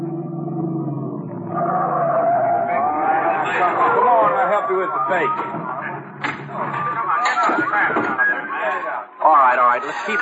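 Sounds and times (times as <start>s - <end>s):
car engine rumbling: 0.0s - 7.2s
tires squealing as car speeds off: 0.1s - 7.4s
speech: 4.6s - 6.4s, 7.5s - 10.2s.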